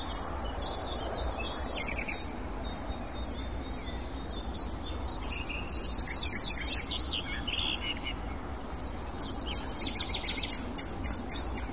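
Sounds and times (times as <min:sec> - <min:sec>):
hectic, loud varied songbird song: 0:00.0 - 0:11.7
outdoor noise: 0:00.0 - 0:11.7.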